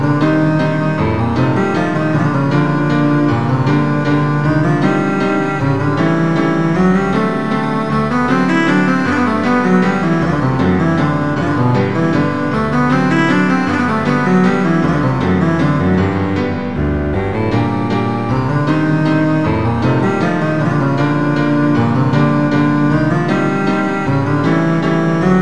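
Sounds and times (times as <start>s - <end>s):
cello playing a waltz in A minor: 0.0s - 25.4s
piano playing a waltz in A minor: 0.0s - 25.4s.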